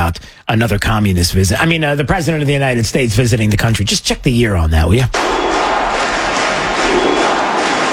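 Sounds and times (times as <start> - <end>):
speech: 0.1 - 5.6
crowd cheering at a baseball stadium in Cuba during a presidential visit: 5.2 - 7.9.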